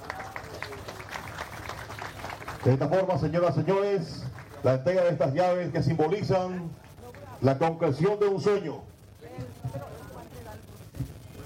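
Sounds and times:
audience applause: 0.0 - 4.7
speech: 2.6 - 6.8, 7.4 - 9.4.

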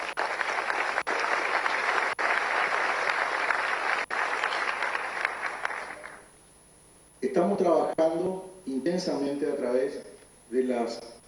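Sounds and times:
audience clapping: 0.0 - 6.3
speech: 7.4 - 11.1.

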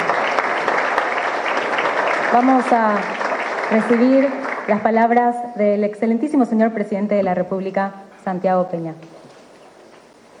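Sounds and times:
audience applause: 0.0 - 5.2
speech: 2.3 - 9.1.

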